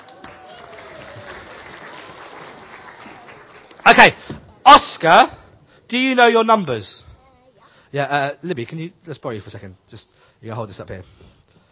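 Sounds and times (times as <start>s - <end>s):
audience clapping for a volunteer: 0.0s - 4.3s
speech: 3.9s - 7.1s, 7.9s - 11.3s.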